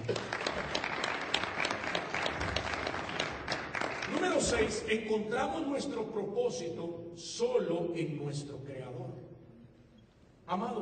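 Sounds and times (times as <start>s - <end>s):
audience applause: 0.0s - 4.7s
speech: 4.4s - 9.3s, 10.5s - 10.7s.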